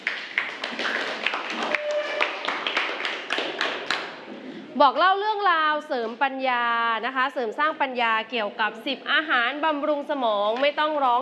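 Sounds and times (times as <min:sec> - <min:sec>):
audience clapping: 0:00.0 - 0:04.3
speech: 0:04.8 - 0:11.1.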